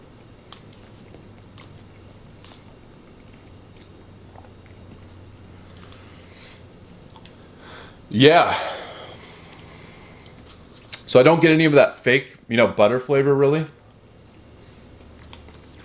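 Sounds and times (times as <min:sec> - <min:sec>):
soft chewing of four cheese mashed potatoes in a taste test: 0:00.0 - 0:07.5, 0:09.5 - 0:11.1, 0:13.8 - 0:15.8
speech: 0:08.1 - 0:08.8, 0:11.2 - 0:13.8.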